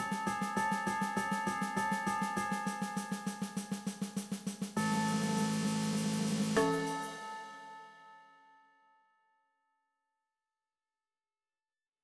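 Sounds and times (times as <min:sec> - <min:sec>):
percussion: 0:00.0 - 0:08.1.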